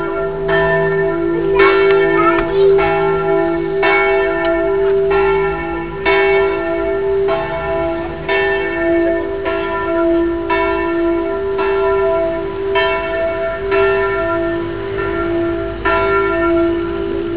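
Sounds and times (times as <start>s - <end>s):
Fiesole clock tower: 0.0s - 17.3s.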